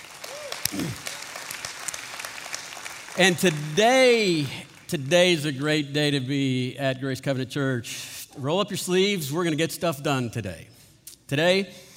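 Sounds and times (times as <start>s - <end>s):
congregation clapping at Grace Covenant Church on Resurrection Sunday: 0.0s - 6.2s
speech: 3.2s - 11.8s.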